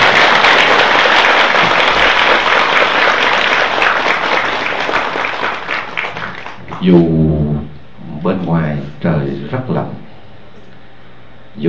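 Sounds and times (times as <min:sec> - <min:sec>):
audience applause: 0:00.0 - 0:06.9
speech: 0:06.8 - 0:07.5, 0:08.2 - 0:10.0.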